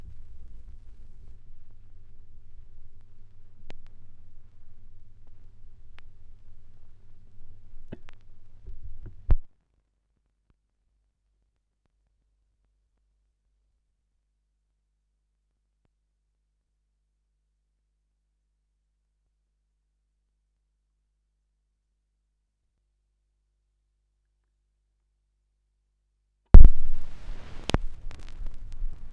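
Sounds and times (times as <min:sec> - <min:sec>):
gramophone record noise at 16 rpm: 0:00.0 - 0:09.5, 0:26.6 - 0:29.1.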